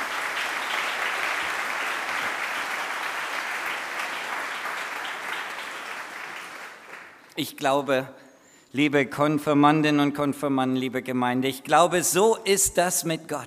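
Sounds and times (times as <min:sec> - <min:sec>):
crowd applause: 0:00.0 - 0:07.2
speech: 0:07.4 - 0:13.4.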